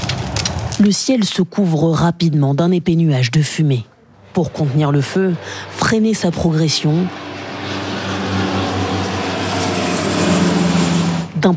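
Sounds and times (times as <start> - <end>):
speech: 0.8 - 7.8
firefighting water bombers or Chinook helicopter engine drone over a wildfire: 4.0 - 11.5.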